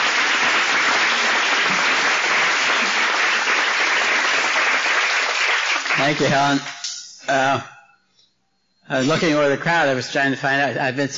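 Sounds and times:
audience applause welcoming speaker: 0.0s - 6.9s
speech: 6.0s - 7.8s, 8.9s - 11.1s.

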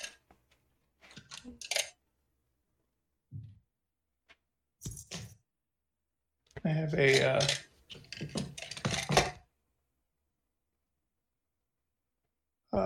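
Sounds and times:
speech: 6.6s - 8.3s
rummaging clicks and rustling while looking for a pencil sharpener: 7.1s - 9.4s.

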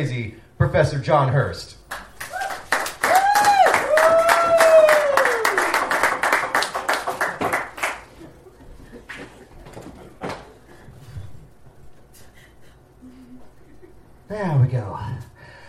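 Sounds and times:
speech: 0.0s - 1.8s
audience applause: 1.9s - 9.4s.

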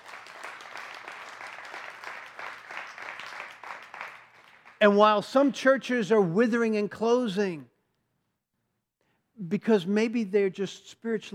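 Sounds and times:
audience hand clapping: 0.0s - 4.8s
speech: 4.8s - 7.7s, 9.4s - 11.3s.

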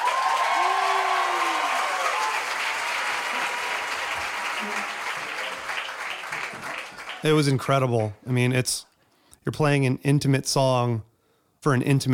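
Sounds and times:
whoops and shouted cheers: 0.0s - 7.2s
large concert crowd applauding: 0.0s - 8.2s
speech: 7.2s - 12.1s.

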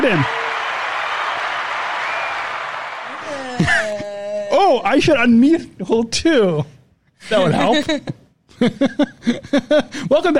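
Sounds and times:
speech: 0.0s - 0.4s, 4.7s - 10.3s
virtual applause: 0.0s - 3.6s.

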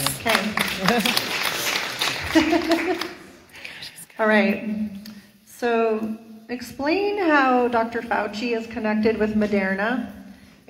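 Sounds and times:
laughter: 0.0s - 3.5s
hand clapping: 0.0s - 3.9s
speech: 0.2s - 1.4s, 2.3s - 3.1s, 4.2s - 10.6s.

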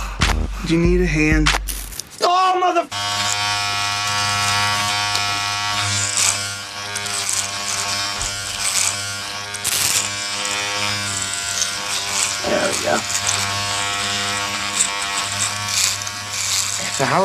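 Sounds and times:
speech: 0.6s - 1.6s, 2.2s - 3.2s, 17.0s - 17.2s
electric razor buzzing: 2.9s - 17.2s.

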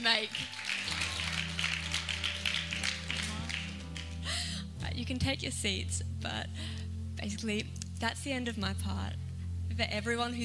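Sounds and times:
speech: 0.0s - 0.6s, 5.0s - 10.4s
audience clapping: 0.0s - 4.3s.

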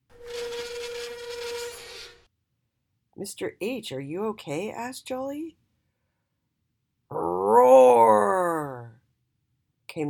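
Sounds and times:
trolley wheels squealing to a halt: 0.2s - 2.2s
speech: 3.2s - 5.6s, 7.5s - 8.3s.

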